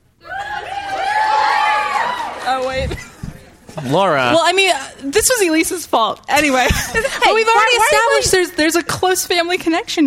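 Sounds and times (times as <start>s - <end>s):
live audience screaming: 0.2s - 2.8s
speech: 3.8s - 10.0s.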